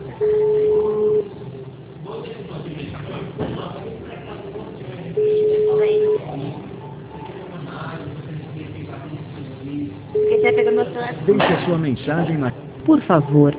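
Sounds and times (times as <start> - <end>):
telephone busy line tone beeps during a phone call: 0.2 - 1.3, 5.2 - 6.3, 10.2 - 10.8
speech: 11.7 - 13.5.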